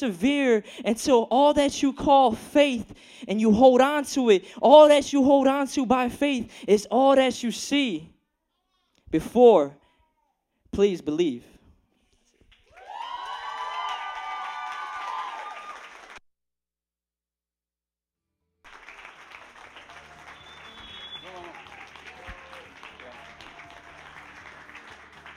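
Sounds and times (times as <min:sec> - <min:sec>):
speech: 0:00.0 - 0:08.1, 0:09.1 - 0:09.8, 0:10.7 - 0:11.5
audience applause: 0:12.5 - 0:16.2, 0:18.7 - 0:25.3
cheers and whoops: 0:12.6 - 0:16.2, 0:19.8 - 0:24.5.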